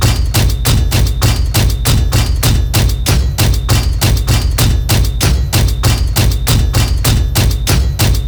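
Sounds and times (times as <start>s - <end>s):
malfunctioning door hits: 0.0s - 8.2s.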